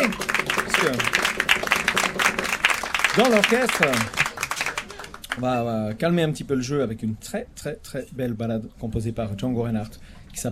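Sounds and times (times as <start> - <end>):
audience applause: 0.0 - 5.6
speech: 0.8 - 1.2, 3.2 - 4.2, 5.4 - 10.5.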